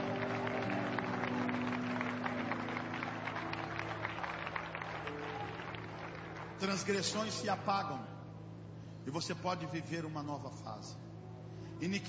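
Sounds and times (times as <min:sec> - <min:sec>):
audience clapping: 0:00.0 - 0:07.4
speech: 0:06.6 - 0:08.1, 0:09.0 - 0:11.0, 0:11.8 - 0:12.0.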